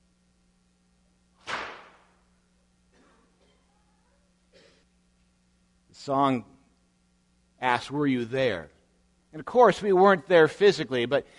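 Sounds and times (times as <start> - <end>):
whip cracking: 1.4 - 2.1
speech: 6.0 - 6.5, 7.6 - 11.3.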